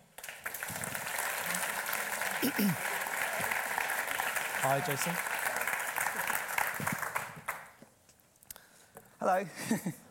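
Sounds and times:
audience applause welcoming a filmmaker onto the stage: 0.0s - 7.8s
speech: 2.4s - 2.9s, 4.6s - 5.3s, 9.2s - 10.0s.

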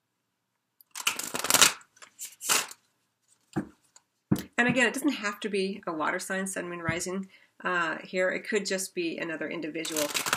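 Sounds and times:
tarot cards shuffling: 0.9s - 4.6s, 9.8s - 10.3s
speech: 4.6s - 10.3s.

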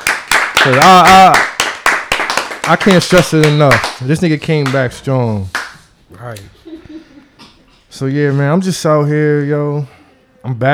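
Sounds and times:
hand clapping: 0.0s - 4.9s, 5.5s - 6.5s
speech: 0.7s - 1.5s, 2.7s - 6.6s, 8.0s - 10.7s.

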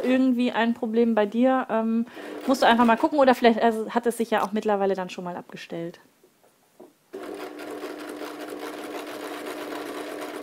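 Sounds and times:
speech: 0.0s - 6.1s
sewing machine hemming slowly: 7.2s - 10.4s.

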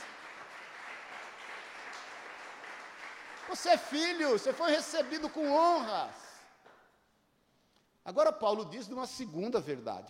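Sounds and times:
audience applause: 0.0s - 5.8s
speech: 3.5s - 6.2s, 8.1s - 10.0s.

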